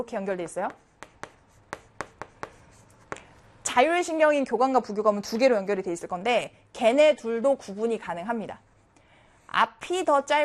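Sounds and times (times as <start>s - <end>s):
speech: 0.0s - 0.9s, 3.8s - 8.7s, 9.6s - 10.4s
hand drawing strokes of a nerve neuron diagram: 0.6s - 3.2s.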